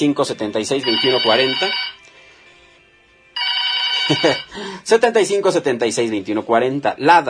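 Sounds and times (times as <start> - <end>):
speech: 0.0 - 2.0, 4.1 - 7.2
telephone ringing in a radio booth: 0.8 - 2.0, 3.4 - 4.5.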